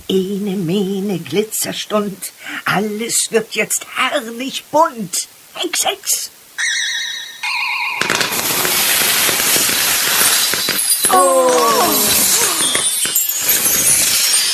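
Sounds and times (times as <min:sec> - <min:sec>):
speech: 0:00.1 - 0:06.8
glassy tinkles: 0:06.6 - 0:14.5
sparkly magical chime: 0:06.6 - 0:14.5
magical pudding explosion: 0:07.4 - 0:14.5
scattered pops: 0:08.0 - 0:13.7.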